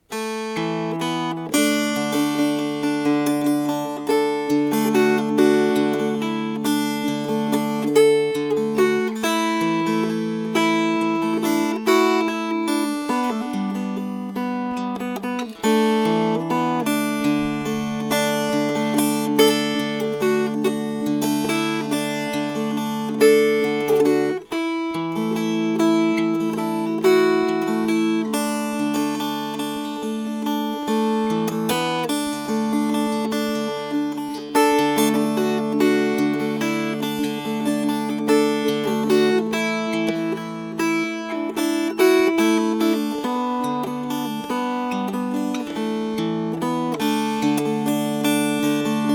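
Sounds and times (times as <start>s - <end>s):
fingerpicked strings: 0.0s - 49.1s.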